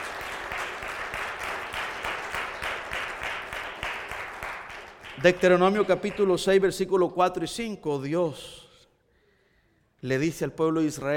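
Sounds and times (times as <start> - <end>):
crowd applause: 0.0 - 6.3
speech: 5.2 - 8.6, 10.0 - 11.1.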